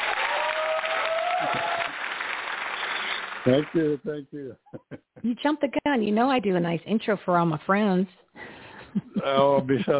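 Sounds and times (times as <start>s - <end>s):
applause: 0.0s - 4.0s
speech: 3.4s - 9.9s
laughter: 3.5s - 5.3s, 8.8s - 9.9s.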